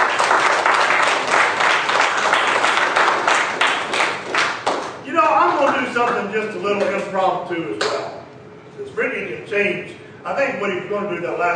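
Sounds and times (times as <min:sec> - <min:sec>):
audience applause: 0:00.0 - 0:05.0
speech: 0:06.2 - 0:08.2, 0:08.8 - 0:11.5.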